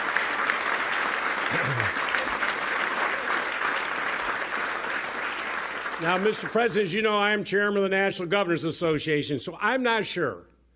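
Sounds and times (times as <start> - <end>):
round of applause for the President and the First Lady: 0.0 - 6.9
speech: 1.5 - 2.1, 6.0 - 10.5.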